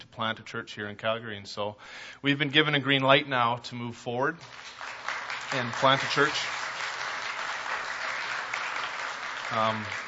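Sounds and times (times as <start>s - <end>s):
speech: 0.1s - 6.6s, 9.5s - 10.0s
audience applause: 4.4s - 10.0s.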